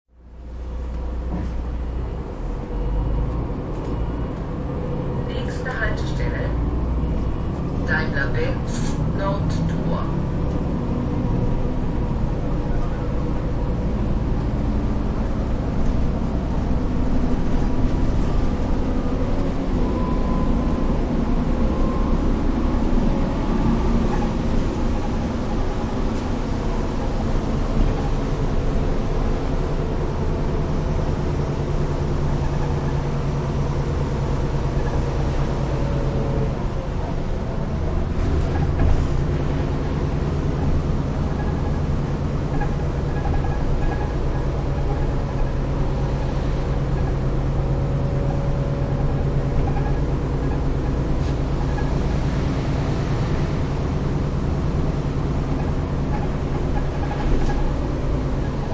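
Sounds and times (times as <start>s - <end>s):
bus ride: 0.1s - 58.7s.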